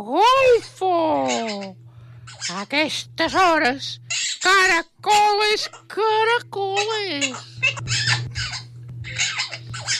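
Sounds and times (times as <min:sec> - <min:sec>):
speech: 0:00.0 - 0:08.2
parrot squawking: 0:02.3 - 0:02.5, 0:04.1 - 0:04.5, 0:06.8 - 0:09.9.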